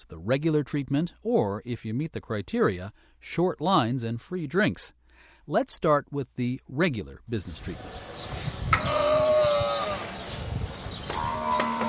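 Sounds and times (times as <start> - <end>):
speech: 0.0 - 8.4
camel vocalizing at a desert dairy: 8.7 - 11.8.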